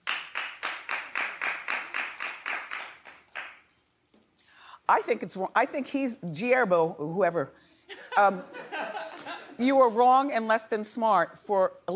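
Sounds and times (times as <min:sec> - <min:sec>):
hands clapping: 0:00.0 - 0:03.7
speech: 0:04.9 - 0:07.6, 0:08.2 - 0:08.6, 0:09.6 - 0:11.9
laughter: 0:07.9 - 0:09.6.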